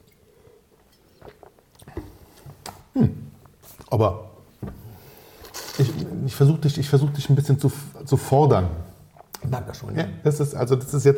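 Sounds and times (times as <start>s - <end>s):
wine being tasted with sipping and slurping: 0.4s - 2.3s, 5.3s - 6.2s
speech: 3.0s - 3.2s, 3.9s - 4.3s, 5.8s - 8.9s, 9.5s - 11.1s.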